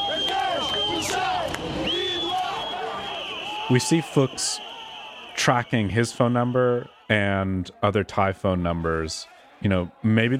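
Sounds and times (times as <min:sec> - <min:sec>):
steady high-pitched whistle tone: 0:00.0 - 0:07.3
anti-government protest crowd roaring: 0:00.0 - 0:10.3
speech: 0:03.7 - 0:04.7, 0:05.4 - 0:10.3.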